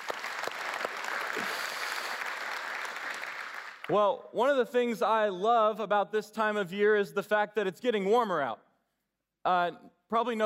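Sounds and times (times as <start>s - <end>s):
audience clapping: 0.0s - 4.0s
speech: 3.9s - 8.7s, 9.4s - 10.4s.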